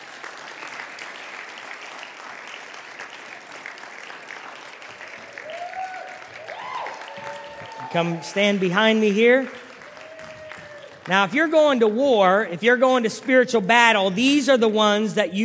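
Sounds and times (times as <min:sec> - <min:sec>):
audience applause: 0:00.0 - 0:12.0
speech: 0:07.9 - 0:09.6, 0:11.1 - 0:15.4.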